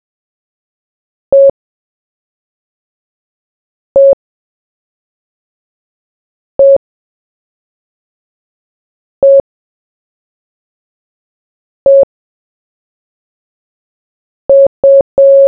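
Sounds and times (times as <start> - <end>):
morse code beeps: 1.3 - 1.5, 4.0 - 4.2, 6.6 - 6.8, 9.2 - 9.4, 11.9 - 12.1, 14.5 - 15.4.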